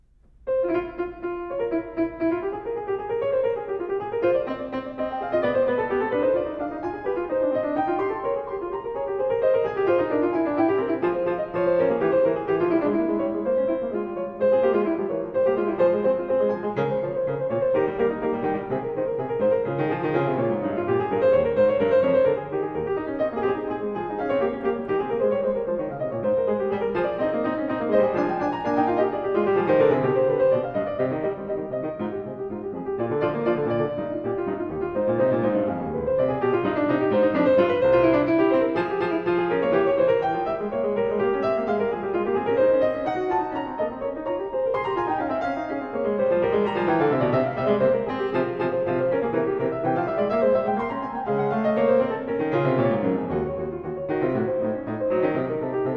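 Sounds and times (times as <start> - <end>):
keyboard prelude and fugue in F minor: 0.0 - 55.9.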